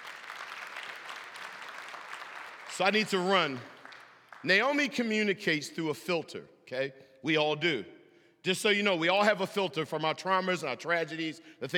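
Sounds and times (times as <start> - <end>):
audience hand clapping: 0.0 - 4.8
speech: 2.8 - 3.7, 4.4 - 11.7.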